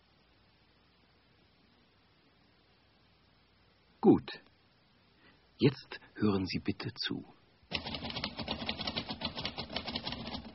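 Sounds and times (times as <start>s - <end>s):
speech: 4.0s - 4.5s, 5.6s - 7.9s
typewriter clatter: 7.7s - 10.5s.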